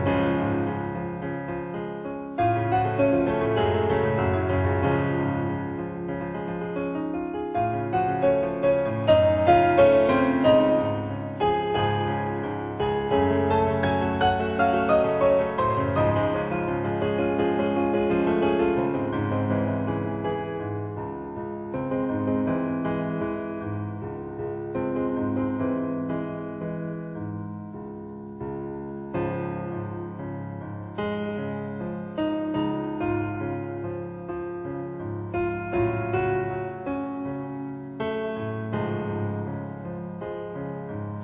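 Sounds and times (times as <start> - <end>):
romantic piano concerto: 0.0 - 41.2.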